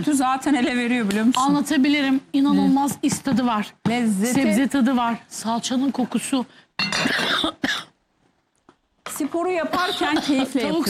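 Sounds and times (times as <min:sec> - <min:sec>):
speech: 0:00.0 - 0:07.6, 0:09.2 - 0:10.8
harsh raspy coughs: 0:06.9 - 0:08.0.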